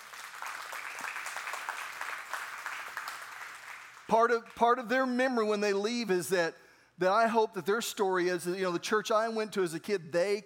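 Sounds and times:
audience clapping: 0.0s - 4.6s
speech: 4.1s - 10.4s.

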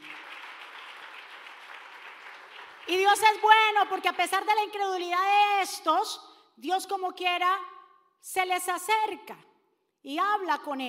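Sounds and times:
audience applause: 0.0s - 2.9s
speech: 2.9s - 10.8s.

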